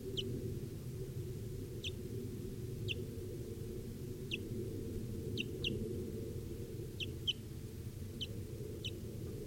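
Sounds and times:
low rumbling hum: 0.0s - 9.4s
young wild bird chirping: 5.4s - 5.8s, 7.0s - 7.4s.

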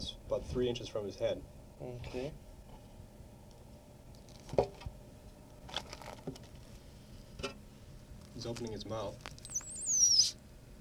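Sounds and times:
speech: 0.0s - 2.5s, 8.4s - 9.4s
low hum: 0.0s - 10.7s
small caged animal squeaking: 9.2s - 10.4s.

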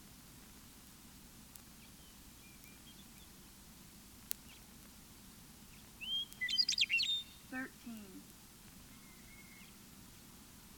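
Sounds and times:
meadowlark singing: 1.8s - 3.5s, 5.7s - 8.1s, 8.9s - 9.8s
speech: 7.6s - 8.3s.

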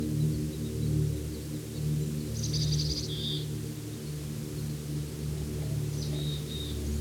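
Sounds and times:
low droning hum: 0.1s - 6.9s
several birds chorusing and answering calls: 4.7s - 6.9s.

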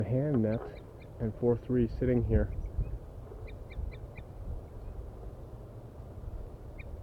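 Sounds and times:
speech: 0.0s - 2.6s
wild birds calling in treetops: 0.3s - 5.0s.

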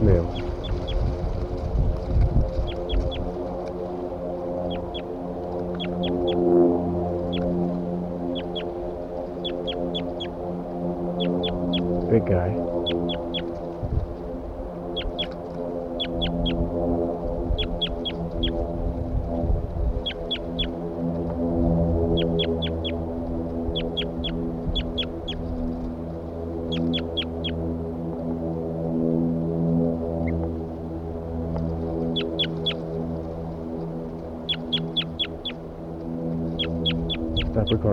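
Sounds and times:
bird calling loudly: 0.0s - 1.1s, 2.6s - 3.4s, 4.6s - 6.5s, 7.1s - 10.4s, 11.1s - 12.0s, 12.8s - 13.7s, 14.9s - 16.6s, 17.5s - 18.7s, 19.9s - 20.8s, 22.0s - 25.9s, 26.6s - 27.6s, 32.0s - 32.9s, 34.3s - 35.7s, 36.4s - 37.9s
low droning hum: 0.0s - 37.9s
speech: 0.1s - 0.6s.

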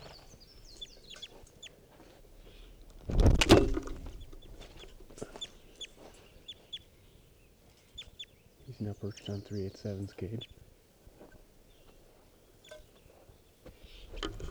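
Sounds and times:
wild bird chirping clucks: 0.0s - 3.0s, 4.0s - 10.6s, 11.2s - 14.4s
rustling or flapping: 2.3s - 5.4s
speech: 8.8s - 10.6s.

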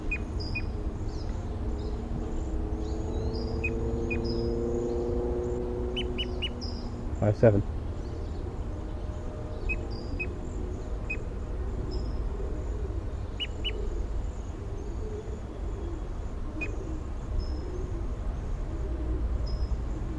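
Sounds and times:
birds chirping and whistling: 0.0s - 20.1s.

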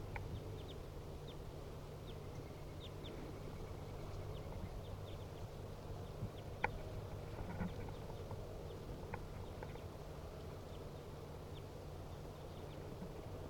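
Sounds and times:
wild birds calling: 0.1s - 13.4s.

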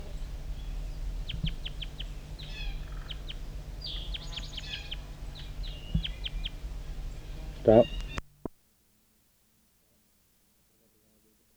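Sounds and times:
wild bird calling near the bottom of the hollow: 0.0s - 8.4s
speech: 7.7s - 8.0s.

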